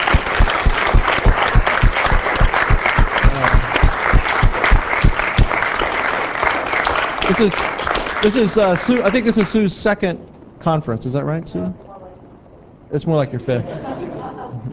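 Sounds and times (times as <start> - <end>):
audience applause: 0.0 - 9.6
speech: 7.3 - 11.8, 12.9 - 13.9
laughter: 13.6 - 14.7.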